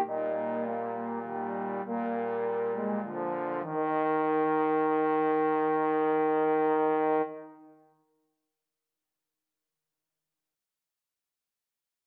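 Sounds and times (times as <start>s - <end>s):
trombone quartet: 0.0s - 7.7s.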